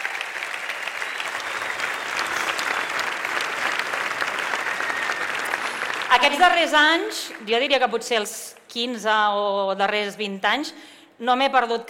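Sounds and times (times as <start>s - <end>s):
audience applause: 0.0s - 7.1s
speech: 6.1s - 11.8s.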